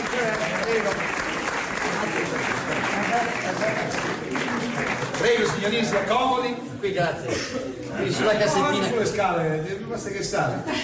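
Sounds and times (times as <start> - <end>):
audience applause: 0.0 - 6.3
speech: 5.4 - 10.8.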